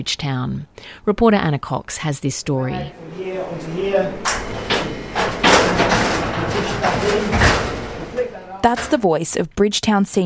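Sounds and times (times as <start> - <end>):
speech: 0.0 - 4.8, 8.6 - 10.2
morgue holding chamber door banging: 2.9 - 9.2.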